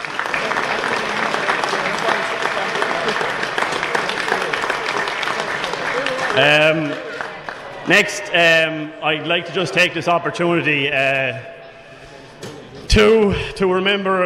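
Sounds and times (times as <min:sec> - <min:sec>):
audience applause: 0:00.0 - 0:08.5
speech: 0:06.4 - 0:07.0, 0:07.9 - 0:11.6, 0:13.0 - 0:14.2.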